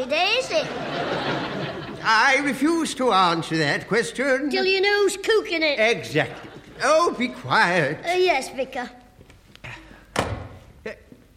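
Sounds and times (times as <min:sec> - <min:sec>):
speech: 0:00.0 - 0:09.0, 0:10.8 - 0:11.0
laughter: 0:00.4 - 0:02.7, 0:06.1 - 0:07.4
back kitchen door closing with a heavy thunk: 0:10.1 - 0:10.6.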